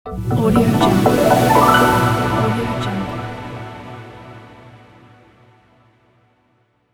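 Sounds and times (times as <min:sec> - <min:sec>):
stylish evolving motion logo sound: 0:00.2 - 0:04.6.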